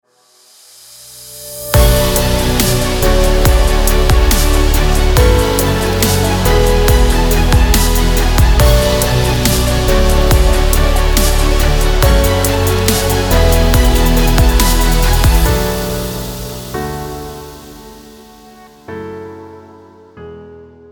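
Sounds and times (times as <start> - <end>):
abstract cinematic music: 1.2 - 19.0.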